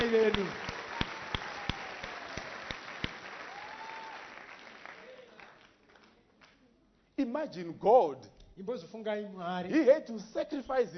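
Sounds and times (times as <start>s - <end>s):
audience applause: 0.0s - 6.2s
speech: 7.3s - 10.9s.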